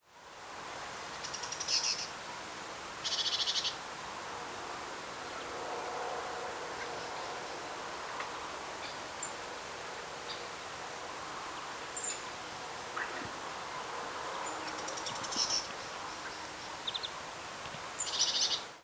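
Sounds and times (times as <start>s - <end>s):
background hiss: 0.0s - 18.8s
great tit calls: 3.0s - 3.8s, 11.5s - 18.7s.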